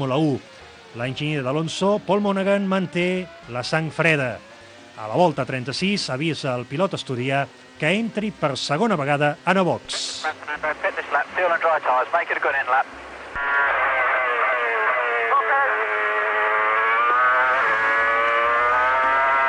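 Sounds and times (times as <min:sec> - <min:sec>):
speech: 0:00.0 - 0:13.8
Renault number 8 Formula 1 car engine: 0:14.4 - 0:19.4.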